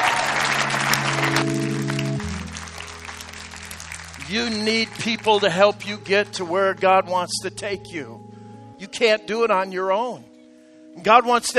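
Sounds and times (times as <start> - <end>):
audience applause: 0.0 - 5.7
speech: 4.3 - 8.2, 8.8 - 10.3, 11.0 - 11.5.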